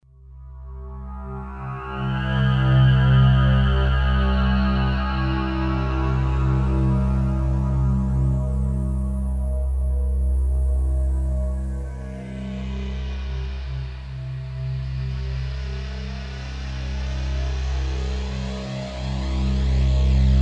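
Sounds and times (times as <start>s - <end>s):
FM8 synthesizer: 0.0s - 20.4s.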